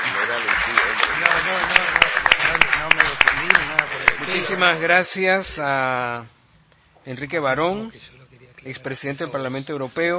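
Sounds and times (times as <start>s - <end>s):
audience applause for panelists: 0.0s - 4.9s
speech: 4.4s - 6.4s, 7.0s - 10.1s.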